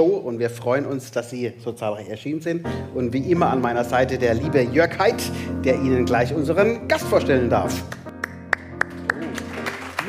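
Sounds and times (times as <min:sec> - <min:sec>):
speech: 0:00.0 - 0:08.0
audience clapping in slow rhythm: 0:07.9 - 0:10.0.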